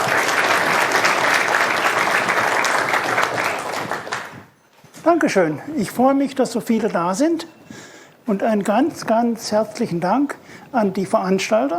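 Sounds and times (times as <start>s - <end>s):
audience applause: 0.0s - 4.5s
speech: 5.0s - 7.6s, 8.3s - 11.7s.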